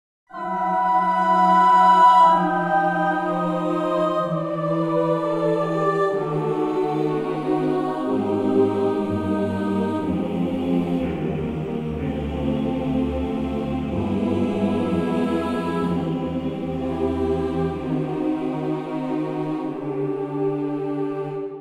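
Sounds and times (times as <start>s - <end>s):
choir singing a C: 0.3s - 21.5s.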